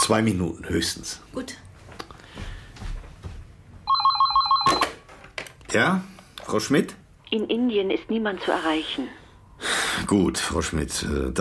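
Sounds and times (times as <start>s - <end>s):
low murky noise: 0.0s - 11.3s
speech: 0.1s - 1.6s, 5.7s - 9.2s, 10.0s - 11.3s
telephone ringing with electronic trill: 3.8s - 5.1s.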